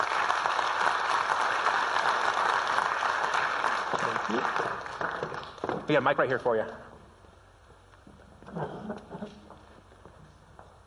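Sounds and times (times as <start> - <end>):
audience applause: 0.0 - 5.8
speech: 4.3 - 5.1, 5.9 - 6.8.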